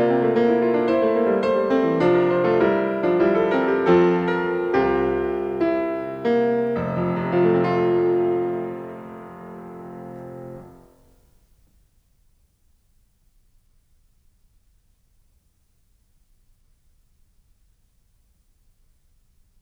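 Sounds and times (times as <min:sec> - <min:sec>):
keyboard suite: 0:00.0 - 0:11.0.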